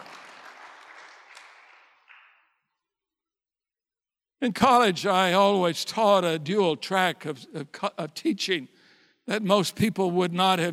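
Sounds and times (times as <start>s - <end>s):
audience applauding: 0.0s - 2.4s
speech: 4.4s - 10.7s.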